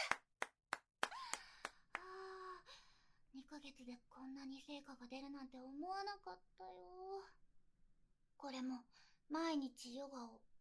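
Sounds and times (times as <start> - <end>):
hand clapping: 0.0 - 2.2
speech: 3.5 - 7.4, 8.4 - 10.5.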